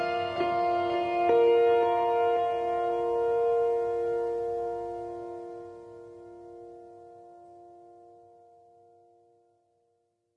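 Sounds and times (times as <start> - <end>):
melodic rock music: 0.0 - 7.7.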